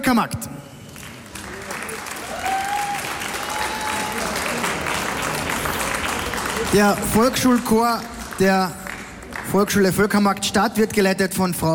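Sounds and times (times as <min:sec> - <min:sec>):
speech: 0:00.1 - 0:00.6, 0:06.6 - 0:08.8, 0:09.5 - 0:11.7
audience applause: 0:00.9 - 0:09.8.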